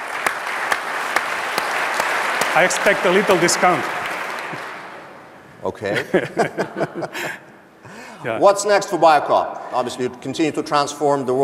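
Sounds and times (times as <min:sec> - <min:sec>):
business conference audience applauding: 0:00.0 - 0:05.2
sharp loud claps: 0:00.0 - 0:05.2
speech: 0:02.6 - 0:04.6, 0:05.6 - 0:07.5, 0:08.2 - 0:11.4
laughter: 0:05.8 - 0:07.6.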